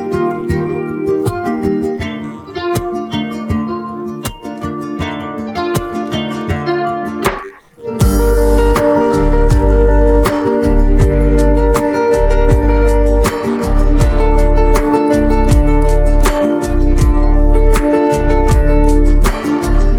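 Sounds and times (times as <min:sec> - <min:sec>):
man playing a Persian instrument: 0:00.0 - 0:19.9.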